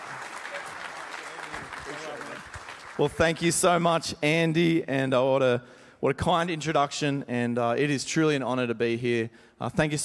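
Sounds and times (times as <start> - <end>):
church congregation applauding to welcome a speaker: 0.0 - 3.5
speech: 1.9 - 10.0.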